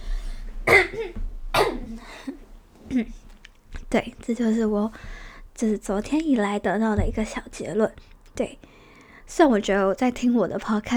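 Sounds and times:
person coughing: 0.7s - 3.2s
speech: 0.8s - 3.2s, 3.9s - 8.7s, 9.3s - 10.9s.

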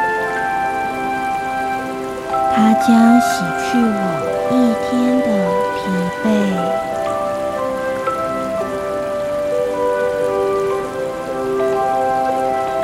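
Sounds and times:
river water flowing slowly: 0.0s - 12.8s
speech: 2.6s - 6.9s.

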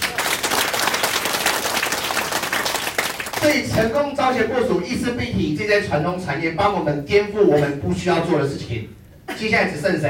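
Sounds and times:
crowd applauding: 0.0s - 3.9s
speech: 3.4s - 10.0s.

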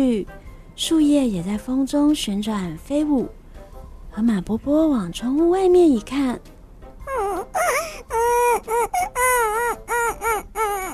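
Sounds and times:
speech: 0.0s - 3.4s, 4.2s - 6.5s
crying and sobbing: 7.1s - 10.9s.

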